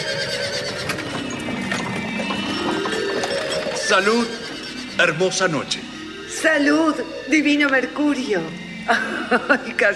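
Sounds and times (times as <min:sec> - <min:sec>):
horses' hooves clip-clopping pulling a carriage: 0:00.0 - 0:05.6
horse whinny: 0:00.0 - 0:06.3
carriage wheels rumbling: 0:00.0 - 0:09.6
speech: 0:03.9 - 0:04.4, 0:05.0 - 0:09.9
laughter: 0:08.9 - 0:09.9.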